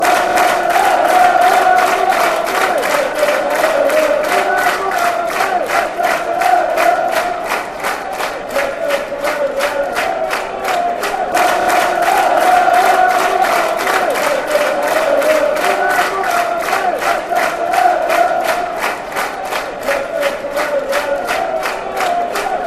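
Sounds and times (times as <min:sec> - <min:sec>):
football fans chanting: 0:00.0 - 0:22.6.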